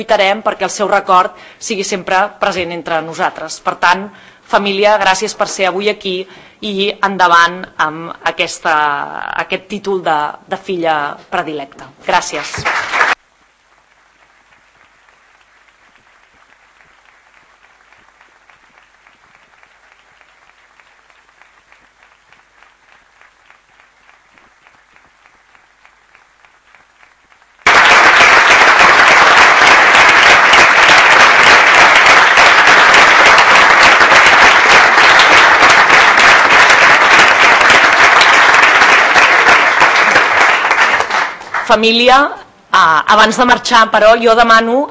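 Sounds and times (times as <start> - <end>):
speech: 0.0 - 13.0, 41.7 - 44.8
audience applause: 12.3 - 41.7.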